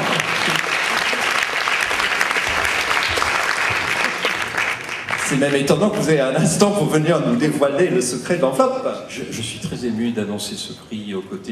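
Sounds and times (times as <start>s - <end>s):
crowd applauding: 0.0s - 6.4s
speech: 5.3s - 11.4s.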